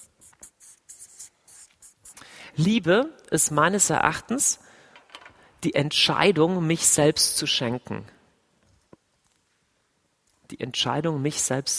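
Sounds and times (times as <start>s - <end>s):
handwriting scratching: 0.0s - 2.2s
speech: 2.6s - 4.8s, 5.6s - 8.2s, 10.6s - 11.7s.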